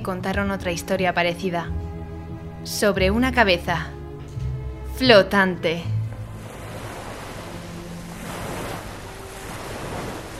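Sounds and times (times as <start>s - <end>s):
speech: 0.0s - 1.9s, 2.6s - 4.0s, 5.0s - 6.0s
ocean surf roaring: 6.0s - 10.3s
gusty wind buffeting: 6.1s - 10.3s.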